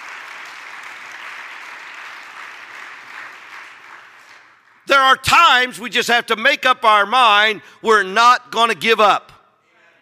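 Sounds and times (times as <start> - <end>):
crowd clapping: 0.0 - 5.2
speech: 4.9 - 9.4.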